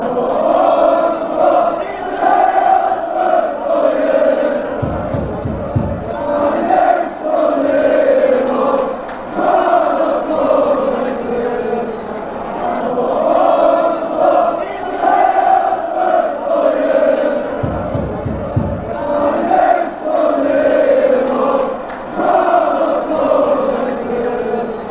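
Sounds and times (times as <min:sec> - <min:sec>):
chant: 0:00.0 - 0:24.9.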